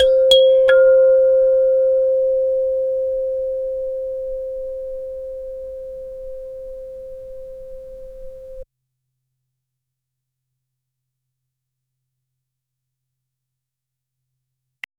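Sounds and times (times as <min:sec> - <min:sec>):
Philippine kudyapi boat lute playing: 0:00.0 - 0:08.6.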